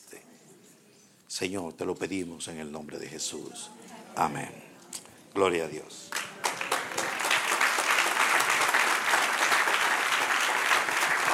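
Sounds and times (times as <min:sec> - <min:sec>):
speech: 0:01.4 - 0:04.6, 0:05.3 - 0:06.2
audience applause: 0:06.1 - 0:11.3.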